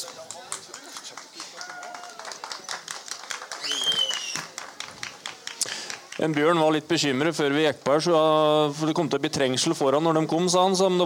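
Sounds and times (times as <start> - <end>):
applause: 0.0 - 6.7
speech: 6.2 - 11.0.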